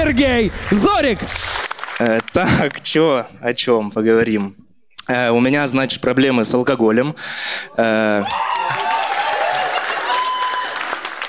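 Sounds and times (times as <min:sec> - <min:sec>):
audience applauding: 0:00.0 - 0:02.9, 0:08.2 - 0:11.2
speech: 0:00.0 - 0:08.6.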